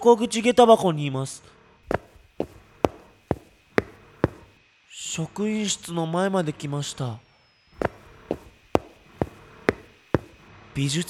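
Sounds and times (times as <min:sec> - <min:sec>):
speech: 0:00.0 - 0:02.0, 0:05.2 - 0:07.3, 0:10.8 - 0:11.0
footsteps through a school entrance hall by the shoe lockers: 0:01.9 - 0:04.5, 0:07.8 - 0:10.4.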